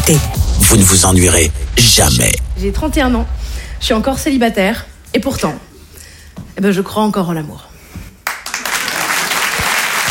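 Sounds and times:
speech: 0.0s - 5.7s, 6.6s - 7.7s
crowd applause: 8.2s - 10.0s.

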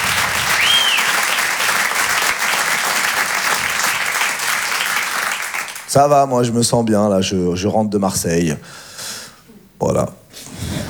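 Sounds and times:
audience applause: 0.0s - 6.0s
speech: 5.9s - 8.9s, 9.8s - 10.2s.

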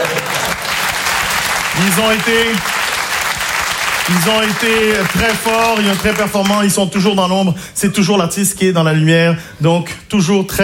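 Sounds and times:
audience applause: 0.0s - 6.7s
speech: 1.8s - 2.8s, 4.1s - 10.6s.

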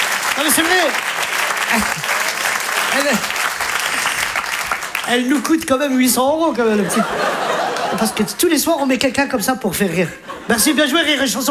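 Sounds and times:
laughter: 0.0s - 5.5s, 6.4s - 8.9s, 9.8s - 11.4s
audience applause: 0.0s - 5.6s, 6.8s - 8.1s
speech: 0.4s - 1.1s, 1.7s - 2.1s, 3.0s - 3.4s, 5.0s - 11.4s.

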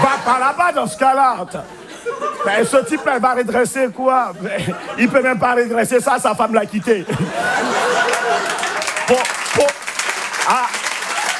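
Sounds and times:
laughter: 0.0s - 11.3s
speech: 0.3s - 9.8s, 10.4s - 10.8s
audience applause: 7.4s - 11.3s.

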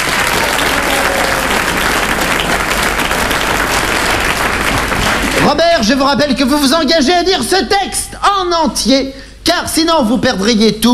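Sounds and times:
audience applause: 0.0s - 5.6s
speech: 5.5s - 10.9s.

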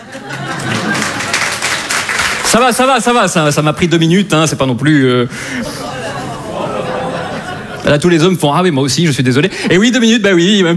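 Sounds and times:
laughter: 0.0s - 3.1s, 5.5s - 8.4s
crowd clapping: 0.0s - 4.2s
speech: 2.6s - 5.9s, 7.9s - 10.7s
faint murmur of voices: 5.5s - 8.0s.

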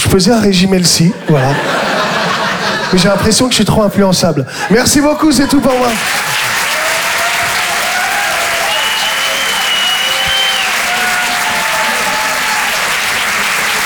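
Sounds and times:
speech: 0.1s - 1.9s, 2.9s - 6.6s
laughter: 1.1s - 3.6s, 4.5s - 13.8s
comedy club audience applause: 5.6s - 13.8s
comedy club audience cheers and whoops: 5.8s - 13.8s.

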